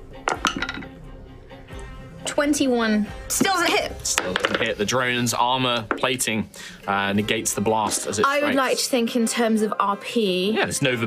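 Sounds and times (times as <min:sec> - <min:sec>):
speech: 0:02.4 - 0:11.0
dice clattering on hard surface: 0:04.2 - 0:04.7.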